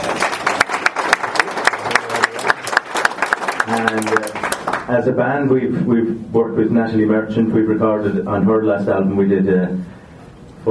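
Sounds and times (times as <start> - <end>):
audience applause: 0.0 - 4.9
speech: 3.7 - 4.3, 4.9 - 9.9.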